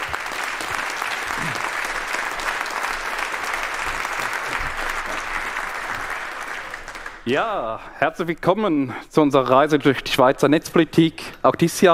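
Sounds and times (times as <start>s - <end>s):
warm applause from audience: 0.0s - 7.3s
speech: 7.3s - 11.9s.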